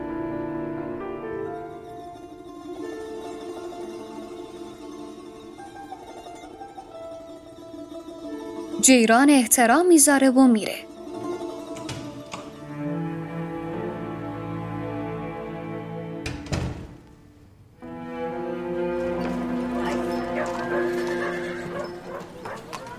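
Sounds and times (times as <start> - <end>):
sustained tonal background: 0.0 - 22.9
speech: 8.8 - 10.9
horse hooves clip-clopping as Siavash's horse is brought: 18.9 - 22.9.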